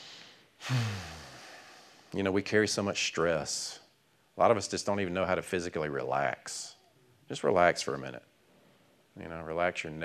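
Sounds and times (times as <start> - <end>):
deep breath taken during a guided relaxation exercise: 0.0 - 2.2
speech: 0.7 - 0.9, 2.1 - 3.8, 4.4 - 8.3, 9.2 - 10.0.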